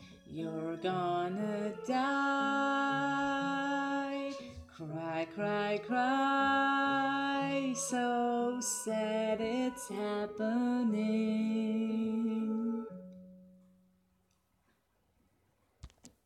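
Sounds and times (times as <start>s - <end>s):
woman singing karaoke: 0.0s - 12.9s.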